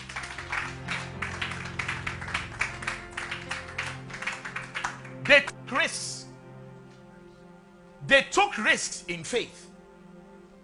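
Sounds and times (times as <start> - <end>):
crowd clapping rhythmically: 0.0 - 5.6
low sustained musical tone: 0.0 - 8.1, 8.9 - 10.6
speech: 5.3 - 6.2, 8.1 - 9.6.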